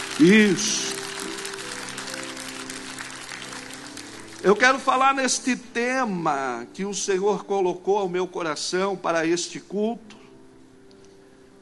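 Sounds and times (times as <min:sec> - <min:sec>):
audience applauding: 0:00.0 - 0:05.2
speech: 0:00.2 - 0:00.9, 0:04.4 - 0:10.1.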